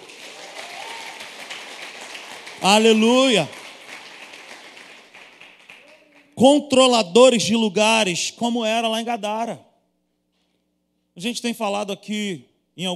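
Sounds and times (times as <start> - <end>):
audience applause: 0.0 - 6.4
speech: 2.6 - 3.6, 6.4 - 9.7, 11.2 - 12.9.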